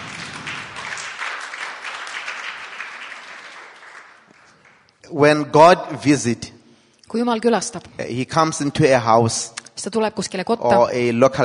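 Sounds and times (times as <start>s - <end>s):
crowd clapping: 0.0s - 5.0s
speech: 5.1s - 11.4s.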